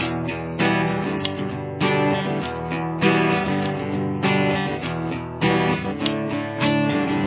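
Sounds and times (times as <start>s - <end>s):
guitar with chorus effect: 0.0s - 7.2s.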